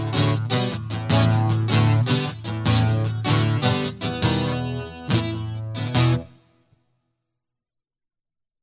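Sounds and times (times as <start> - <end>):
guitar hammer-on prelude in E: 0.0 - 6.7.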